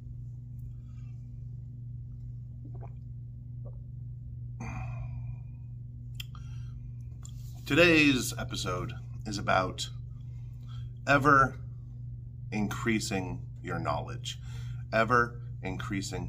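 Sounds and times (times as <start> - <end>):
sipping coffee: 2.1 - 4.1
speech: 2.7 - 3.1, 7.7 - 10.0, 11.1 - 11.6, 12.5 - 16.2.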